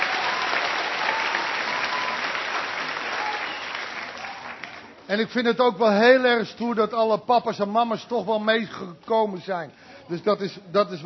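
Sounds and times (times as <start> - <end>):
applause: 0.0 - 5.1
speech: 5.1 - 11.0.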